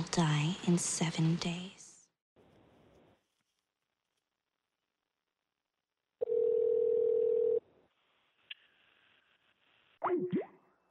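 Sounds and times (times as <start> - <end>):
speech: 0.2 - 1.8
phone dial tone after call hung up: 6.2 - 7.6.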